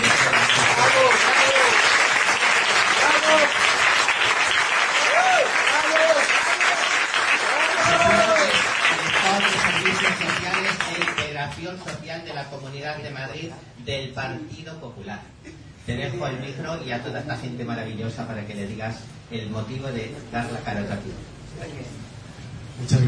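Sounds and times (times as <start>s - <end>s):
scattered cheers and voices: 0.0s - 10.8s
sustained audience applause: 0.0s - 11.3s
speech: 14.7s - 22.0s, 22.8s - 23.0s.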